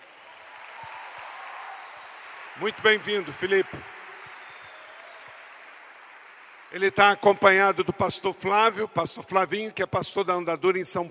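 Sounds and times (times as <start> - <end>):
audience applause: 0.0 - 7.7
speech: 2.6 - 3.9, 6.7 - 11.0.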